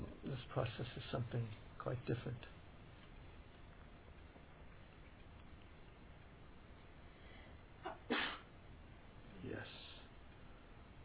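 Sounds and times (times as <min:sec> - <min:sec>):
speech: 0:00.5 - 0:02.6
person sneezing: 0:07.9 - 0:08.5.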